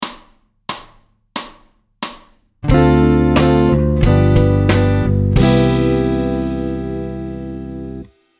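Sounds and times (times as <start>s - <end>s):
musical chord: 2.7s - 8.1s.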